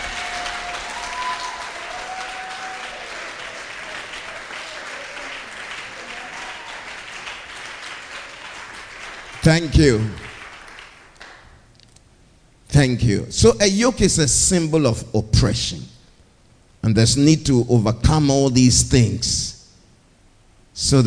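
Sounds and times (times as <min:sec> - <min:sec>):
audience shouting: 0:00.0 - 0:07.1
audience clapping: 0:00.0 - 0:11.7
speech: 0:09.4 - 0:10.2, 0:12.8 - 0:15.9, 0:16.8 - 0:19.6, 0:20.8 - 0:21.0.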